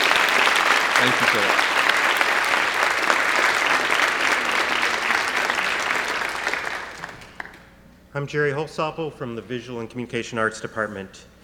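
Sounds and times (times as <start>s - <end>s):
audience applause: 0.0s - 7.7s
speech: 1.0s - 1.7s, 8.2s - 11.3s.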